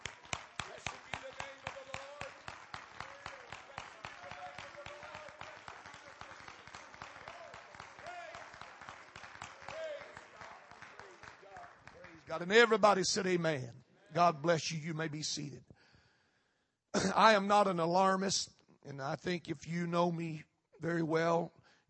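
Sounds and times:
audience clapping hands: 0.0s - 13.4s
speech: 12.3s - 15.7s, 16.9s - 21.6s.

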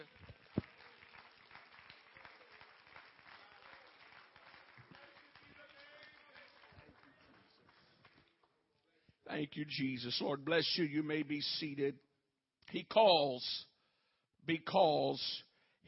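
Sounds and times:
audience clapping hands: 0.0s - 8.6s
speech: 9.4s - 12.1s, 12.7s - 13.7s, 14.4s - 15.8s.

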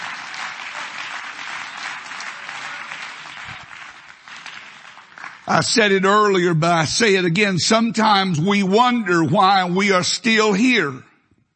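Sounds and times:
audience clapping hands: 0.0s - 6.2s
speech: 5.5s - 11.1s.

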